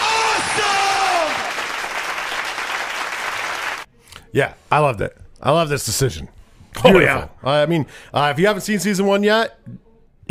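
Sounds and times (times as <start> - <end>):
applause: 0.0 - 3.9
speech: 4.3 - 10.3.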